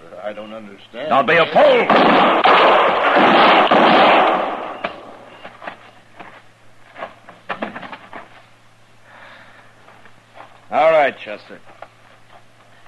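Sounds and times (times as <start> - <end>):
speech: 0.2 - 3.5, 11.3 - 11.8
gunshots in a Western marshal standoff in the dark: 1.3 - 5.3.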